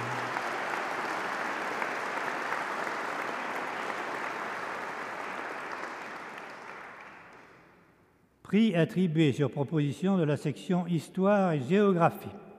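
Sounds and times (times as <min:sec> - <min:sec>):
audience applauding award winners: 0:00.0 - 0:07.6
speech: 0:08.5 - 0:12.4.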